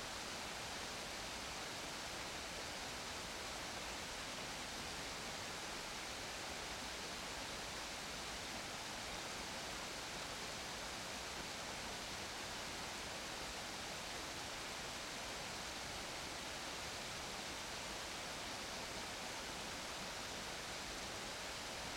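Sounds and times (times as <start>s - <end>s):
subtropical Himalayan glacier stream in Himachal Pradesh: 0.1s - 21.9s.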